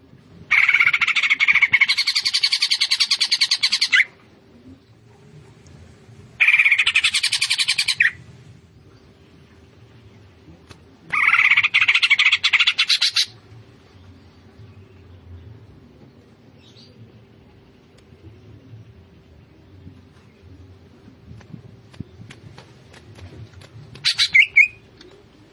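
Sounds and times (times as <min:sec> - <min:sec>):
Greater green leafbird singing fast chattering notes: 0:00.5 - 0:04.1, 0:06.4 - 0:08.2, 0:11.1 - 0:13.4, 0:23.9 - 0:25.4.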